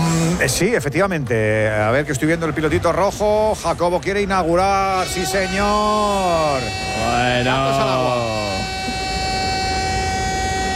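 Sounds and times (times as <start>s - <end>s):
buzzing horn-like alarm: 0.0s - 0.4s, 4.9s - 10.7s
speech: 0.4s - 8.6s.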